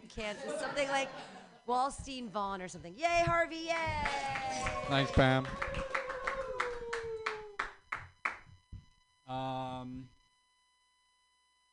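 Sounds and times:
speech: 0.1s - 5.8s, 9.3s - 10.2s
person cheering: 3.8s - 7.7s
hand claps at a comedy open mic: 3.8s - 8.6s.

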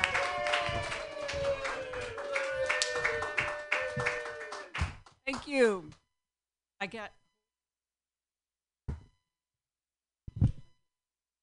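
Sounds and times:
audience applause for a comedian at a comedy show: 0.0s - 5.4s
speech: 6.8s - 7.2s.

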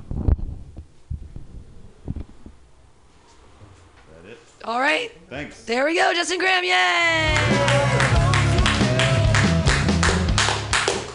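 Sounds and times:
speech: 4.7s - 7.9s
audience clapping wildly: 7.2s - 11.1s.

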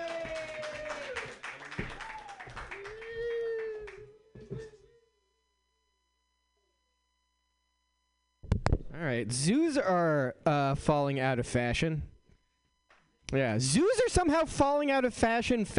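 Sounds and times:
audience applauding a comedian at a stand-up show: 0.0s - 4.0s
speech: 9.0s - 12.1s, 13.3s - 15.7s.

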